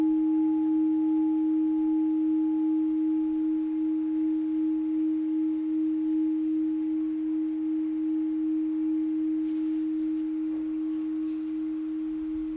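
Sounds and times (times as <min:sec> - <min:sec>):
7 inch gold alchemy crystal singing bowl in D sharp: 0:00.0 - 0:12.5.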